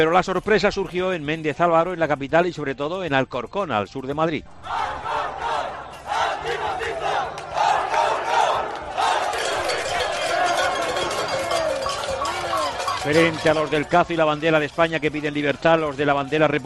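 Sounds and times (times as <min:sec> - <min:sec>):
speech: 0:00.0 - 0:04.8, 0:13.0 - 0:16.6
protest crowd shouting slogans: 0:04.4 - 0:13.8.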